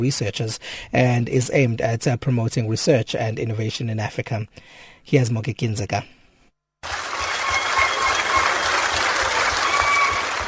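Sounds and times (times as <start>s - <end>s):
speech: 0.0s - 6.2s
applause from academy members: 6.8s - 10.4s.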